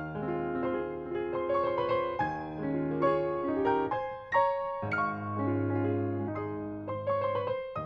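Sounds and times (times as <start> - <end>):
waltz music: 0.2 - 7.7.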